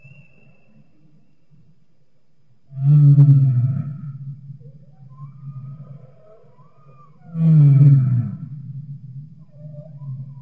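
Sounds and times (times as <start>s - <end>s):
humpback whale song deep moan: 2.7s - 10.4s.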